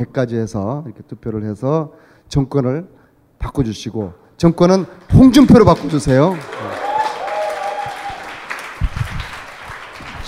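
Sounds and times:
speech: 0:00.0 - 0:06.8
audience applause: 0:05.6 - 0:10.2
people cheering: 0:06.2 - 0:10.2.

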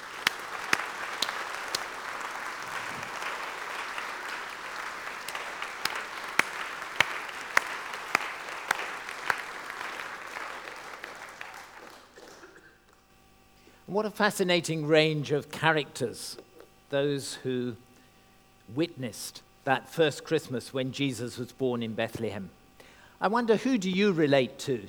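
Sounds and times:
audience applause: 0:00.0 - 0:13.0
speech: 0:14.0 - 0:17.8, 0:18.7 - 0:22.6, 0:23.2 - 0:24.8.

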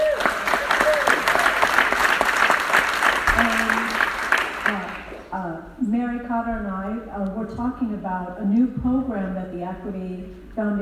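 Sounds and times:
audience applause: 0:00.0 - 0:05.3
speech: 0:06.4 - 0:10.8.

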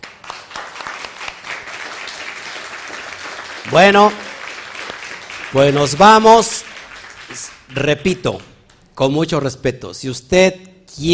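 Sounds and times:
crowd applauding: 0:00.0 - 0:08.5
speech: 0:03.7 - 0:04.2, 0:05.5 - 0:06.7, 0:07.8 - 0:11.1.

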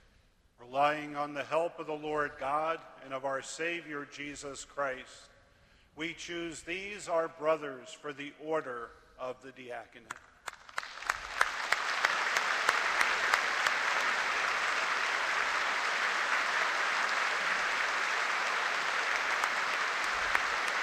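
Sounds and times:
speech: 0:00.7 - 0:05.3, 0:06.0 - 0:10.3
congregation applause: 0:10.4 - 0:20.8.

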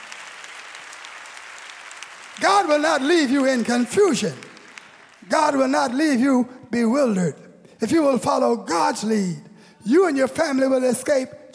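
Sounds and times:
audience clapping hands: 0:00.0 - 0:06.2
speech: 0:02.4 - 0:04.5, 0:05.2 - 0:11.5.

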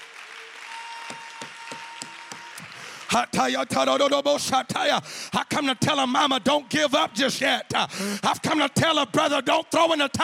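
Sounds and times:
audience clapping and applause: 0:00.0 - 0:05.0
speech: 0:03.1 - 0:10.2.

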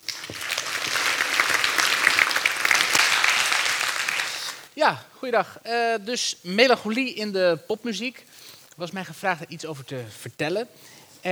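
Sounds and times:
audience applause: 0:00.0 - 0:04.7
speech: 0:04.8 - 0:11.3.

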